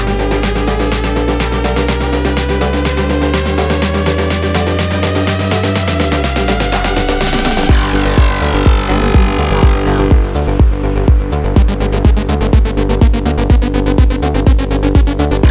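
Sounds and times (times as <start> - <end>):
pulse engine: 0.0 - 15.5.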